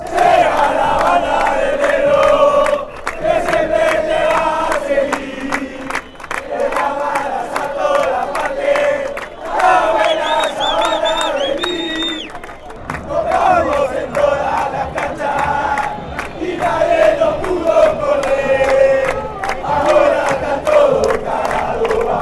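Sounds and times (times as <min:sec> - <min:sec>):
fans chanting: 0:00.0 - 0:22.2.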